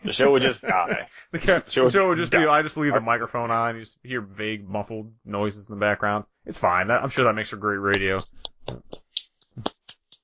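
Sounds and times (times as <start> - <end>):
laughter: 0.0 - 3.3
speech: 0.2 - 9.0
clapping near the microphone: 7.9 - 10.2.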